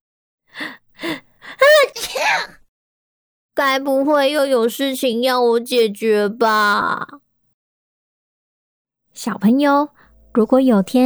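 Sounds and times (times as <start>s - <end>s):
sneeze: 1.9s - 2.6s
speech: 3.6s - 7.2s, 9.2s - 11.0s.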